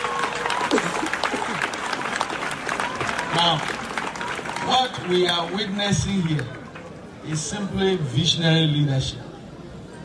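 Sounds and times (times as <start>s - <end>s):
audience clapping: 0.0s - 7.5s
speech: 3.4s - 3.8s, 4.7s - 6.6s, 7.2s - 9.2s.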